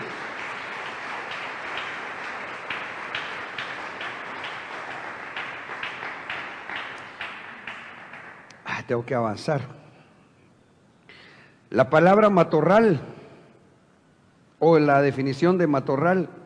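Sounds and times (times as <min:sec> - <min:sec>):
audience clapping hands: 0:00.0 - 0:08.8
speech: 0:08.9 - 0:09.8, 0:11.7 - 0:13.1, 0:14.6 - 0:16.4.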